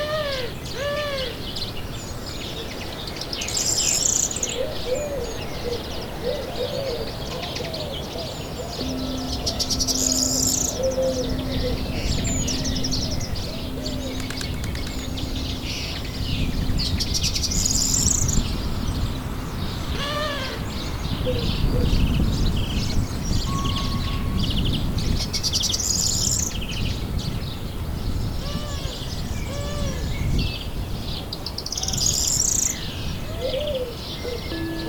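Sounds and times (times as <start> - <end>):
dense birdsong with overlapping chirps and warbles: 0.2 - 34.8
faint steady hum: 8.1 - 22.4, 34.5 - 34.8
low rough rumble: 8.8 - 22.4.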